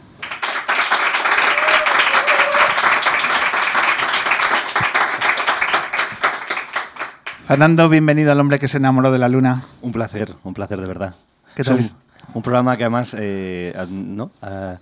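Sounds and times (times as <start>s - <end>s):
studio audience applause: 0.0s - 7.6s
speech: 7.5s - 14.8s.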